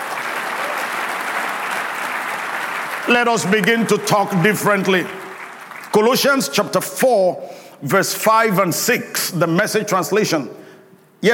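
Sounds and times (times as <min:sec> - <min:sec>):
audience clapping: 0:00.0 - 0:06.8
speech: 0:03.1 - 0:05.2, 0:06.0 - 0:10.6.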